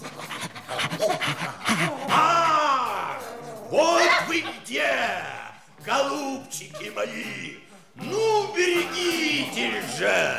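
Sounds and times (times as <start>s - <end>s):
police bloodhounds sniffing out a trail: 0.0s - 5.1s
laughter: 0.0s - 10.3s
speech: 1.0s - 1.6s, 3.7s - 10.3s.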